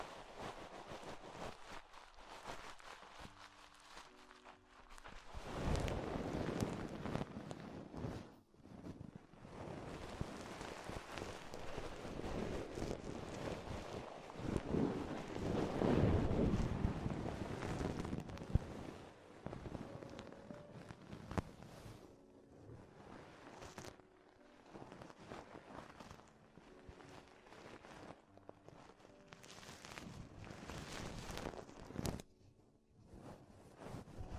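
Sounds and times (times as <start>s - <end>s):
rough rustling and scratching against the microphone: 0.0s - 34.3s.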